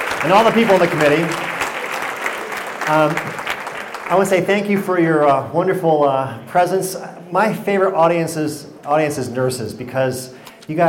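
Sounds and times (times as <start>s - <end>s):
audience round of applause: 0.0s - 4.9s
speech: 0.2s - 1.5s, 2.9s - 3.4s, 4.1s - 10.8s.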